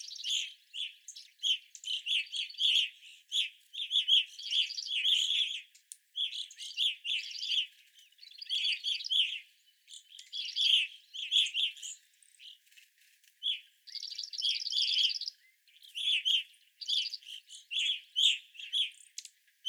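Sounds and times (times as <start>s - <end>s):
evening grosbeak calls: 0.0s - 12.8s, 13.4s - 19.6s.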